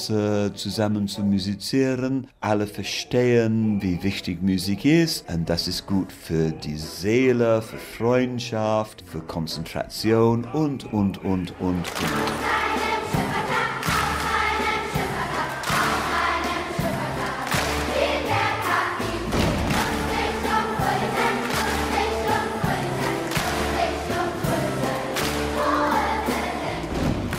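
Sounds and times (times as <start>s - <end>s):
speech: 0.0s - 12.9s
children clapping and stomping in 5/4 time: 11.8s - 25.7s, 26.8s - 27.3s.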